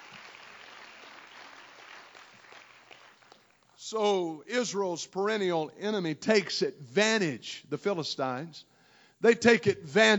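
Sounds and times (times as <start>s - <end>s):
audience clapping: 0.0s - 3.7s
speech: 3.9s - 10.1s.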